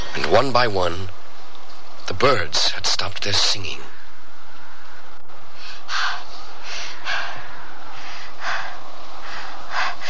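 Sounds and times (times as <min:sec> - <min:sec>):
speech: 0:00.3 - 0:01.2, 0:02.1 - 0:03.9
loud nervous breathing: 0:03.9 - 0:10.0.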